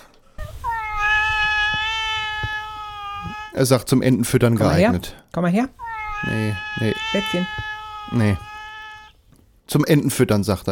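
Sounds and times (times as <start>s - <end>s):
studio cat meowing: 0.3s - 3.6s, 5.8s - 9.2s
speech: 3.6s - 8.5s, 9.7s - 10.7s.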